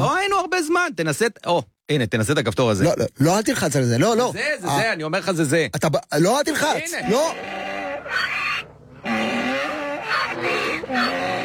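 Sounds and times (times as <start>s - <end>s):
speech: 0.6s - 8.4s
donkey braying sound effect: 6.6s - 11.4s.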